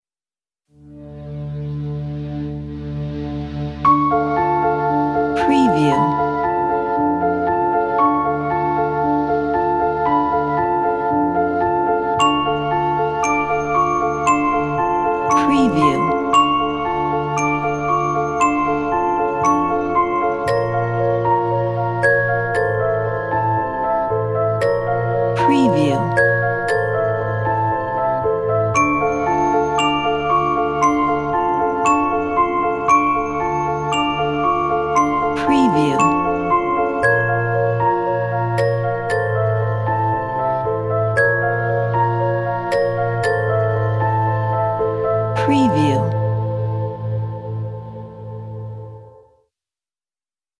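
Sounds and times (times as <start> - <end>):
horror music: 0.8 - 49.1.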